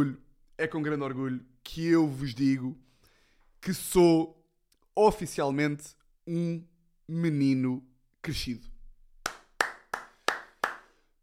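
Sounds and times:
speech: 0.0s - 2.9s, 3.6s - 4.4s, 5.0s - 8.7s
hand clapping: 9.2s - 11.0s.

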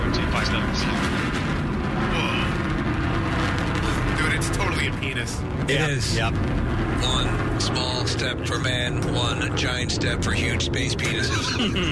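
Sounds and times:
BE-3 rocket engine roaring: 0.0s - 11.9s
speech: 5.1s - 11.9s.

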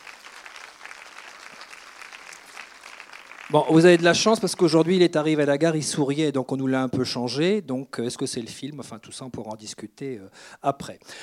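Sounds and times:
audience applause: 0.0s - 5.1s
speech: 3.5s - 11.2s.

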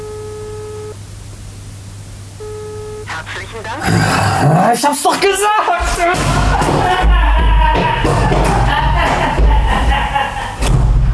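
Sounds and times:
telephone ringing tone: 0.0s - 1.1s, 2.3s - 3.8s
laughter: 3.1s - 10.8s
speech: 3.3s - 7.2s.

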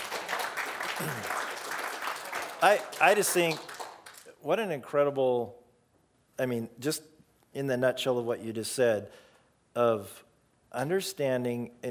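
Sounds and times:
audience applause: 0.0s - 4.3s
speech: 1.0s - 1.4s, 2.6s - 3.7s, 4.4s - 5.6s, 6.4s - 9.2s, 9.8s - 11.8s.

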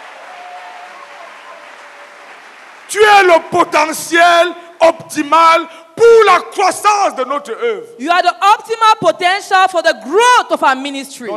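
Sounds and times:
audience clapping: 0.0s - 3.5s
speech: 2.9s - 11.3s.

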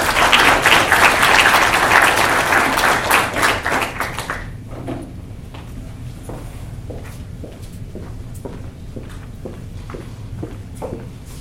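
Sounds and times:
audience applause: 0.0s - 4.5s.

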